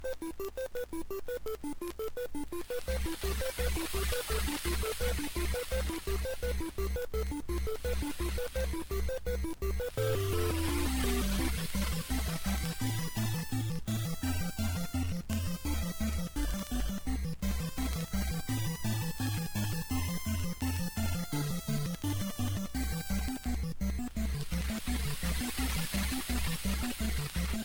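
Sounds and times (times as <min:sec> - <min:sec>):
8-bit chiptune: 0:00.0 - 0:27.6.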